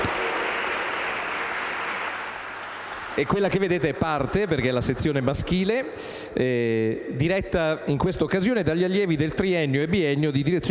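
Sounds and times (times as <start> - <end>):
audience applause after choir performance: 0.0 - 3.7
speech: 3.2 - 10.6.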